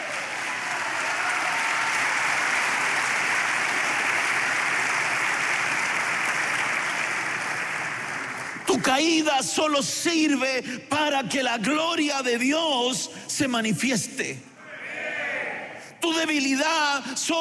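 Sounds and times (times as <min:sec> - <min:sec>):
audience clapping: 0:00.0 - 0:09.3
speech: 0:08.7 - 0:14.5, 0:16.1 - 0:17.3.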